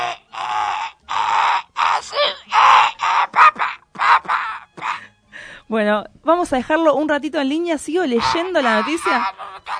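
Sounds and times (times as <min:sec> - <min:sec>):
parrot squawking: 0:00.0 - 0:05.1, 0:08.2 - 0:09.7
speech: 0:05.7 - 0:09.4.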